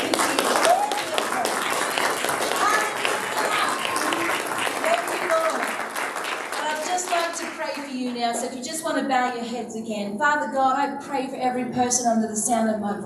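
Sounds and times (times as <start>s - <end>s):
audience applauding: 0.0s - 8.4s
speech: 9.0s - 13.0s.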